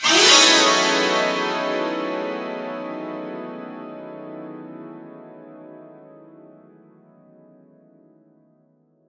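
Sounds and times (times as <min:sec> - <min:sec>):
santoor: 0:00.0 - 0:05.1.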